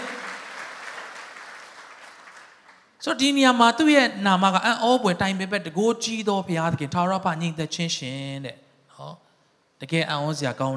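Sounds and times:
church congregation clapping to honor Jesus during a Christmas sermon: 0:00.0 - 0:03.0
speech: 0:03.0 - 0:09.2, 0:09.8 - 0:10.7.

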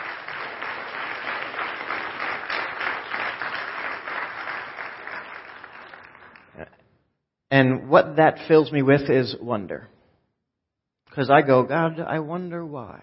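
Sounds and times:
audience clapping: 0:00.0 - 0:06.7
speech: 0:07.5 - 0:09.9, 0:11.2 - 0:13.0.

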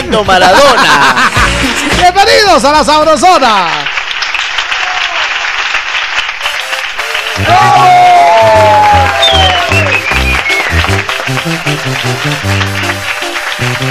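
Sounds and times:
laughter: 0:00.0 - 0:02.0
speech: 0:00.1 - 0:01.2, 0:02.0 - 0:03.8, 0:11.3 - 0:13.8
audience applause: 0:03.4 - 0:13.8.

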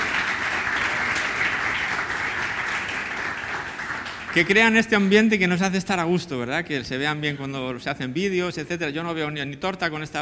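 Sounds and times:
crowd applause: 0:00.0 - 0:04.9
speech: 0:04.4 - 0:10.1.

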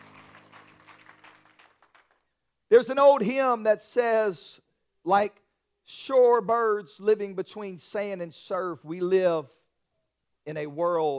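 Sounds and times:
audience clapping hands in praise: 0:00.0 - 0:02.3
speech: 0:02.7 - 0:09.6, 0:10.4 - 0:11.1.

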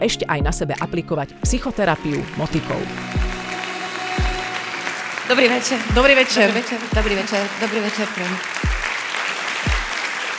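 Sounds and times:
speech: 0:00.0 - 0:03.4, 0:05.3 - 0:08.9
theatre audience applause at a national theatre: 0:02.1 - 0:10.3.

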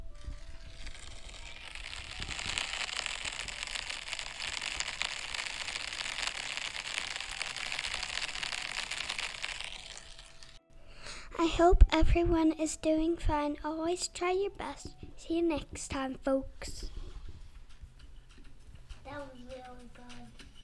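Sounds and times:
rain during a walk: 0:00.0 - 0:10.6
speech: 0:11.4 - 0:16.8.

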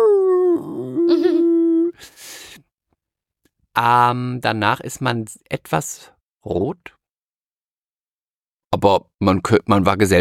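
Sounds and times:
person imitating a dog's howl: 0:00.0 - 0:02.0
speech: 0:03.8 - 0:07.0, 0:08.7 - 0:10.1.

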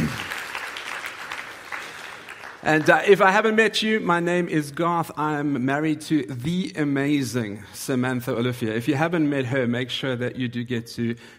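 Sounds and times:
audience applause: 0:00.0 - 0:03.3
speech: 0:02.6 - 0:11.3.

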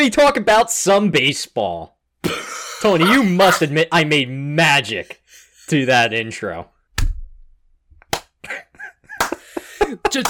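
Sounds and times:
speech: 0:00.0 - 0:06.7, 0:09.9 - 0:10.2
murmured vocal sounds: 0:02.9 - 0:03.6
hand claps: 0:08.0 - 0:08.5, 0:09.1 - 0:09.4.

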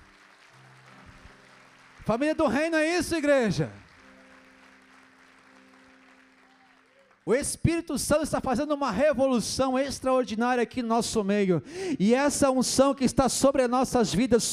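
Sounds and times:
audience applause: 0:00.0 - 0:07.4
speech: 0:02.1 - 0:03.8, 0:07.2 - 0:14.5.

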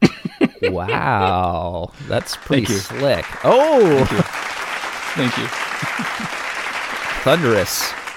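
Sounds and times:
laughter: 0:00.0 - 0:04.4, 0:05.2 - 0:07.9
speech: 0:00.6 - 0:04.5, 0:05.2 - 0:06.5, 0:07.2 - 0:08.0
thunderous applause sound drop: 0:01.0 - 0:08.1.

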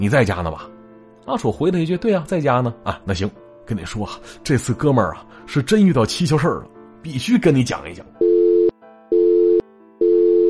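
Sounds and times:
speech: 0:00.0 - 0:08.2
telephone busy tone after hang-up: 0:08.2 - 0:10.4.

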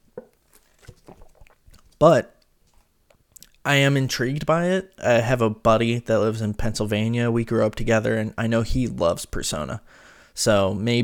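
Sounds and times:
sipping coffee: 0:00.2 - 0:01.9
speech: 0:02.0 - 0:02.3, 0:03.6 - 0:11.0.

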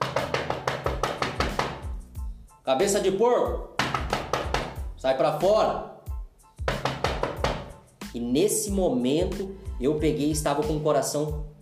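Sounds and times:
knocking on a door: 0:00.0 - 0:02.0, 0:03.8 - 0:04.9, 0:06.6 - 0:07.8
speech: 0:02.7 - 0:04.0, 0:05.0 - 0:05.9, 0:08.2 - 0:11.5.

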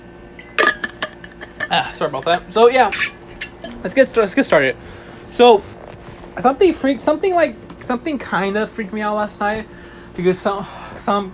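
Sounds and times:
speech: 0:01.7 - 0:03.2, 0:03.8 - 0:05.7, 0:06.4 - 0:11.3
person drinking water: 0:04.8 - 0:06.9.

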